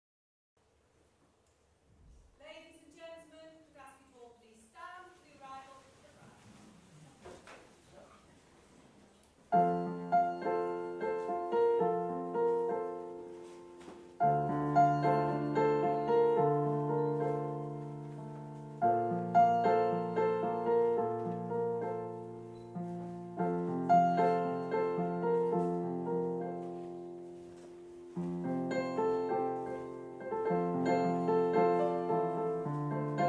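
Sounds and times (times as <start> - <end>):
solo piano: 9.5 - 33.2.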